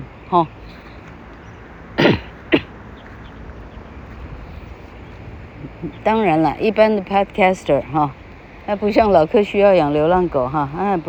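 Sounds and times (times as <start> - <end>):
speech: 0.3 - 0.9, 5.8 - 11.0
person clearing throat: 2.0 - 2.7.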